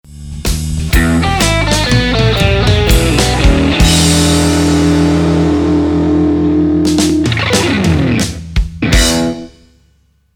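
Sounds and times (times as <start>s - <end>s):
musical lick: 0.9s - 9.6s.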